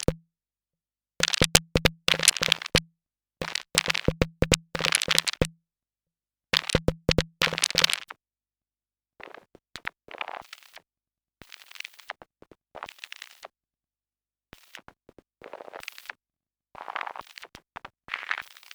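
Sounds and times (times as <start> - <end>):
modulated mutant snare: 0.0 - 0.2, 1.2 - 2.8, 3.7 - 5.5, 6.6 - 7.9.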